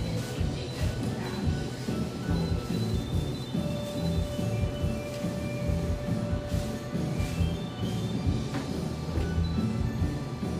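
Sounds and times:
vibrant music in a café: 0.0s - 10.5s.

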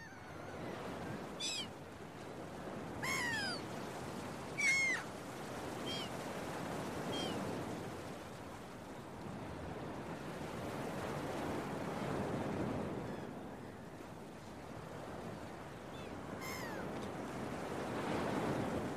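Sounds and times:
gulls calling: 0.0s - 1.7s, 3.0s - 3.7s, 4.6s - 5.1s, 5.8s - 6.2s
waves breaking: 0.0s - 13.0s, 14.5s - 18.9s.

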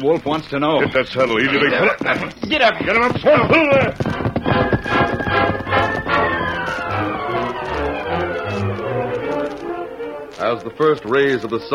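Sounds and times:
speech: 0.0s - 5.9s, 10.4s - 11.7s
horses' hooves galloping: 0.0s - 11.7s
sustained gliding tones: 4.1s - 11.7s.

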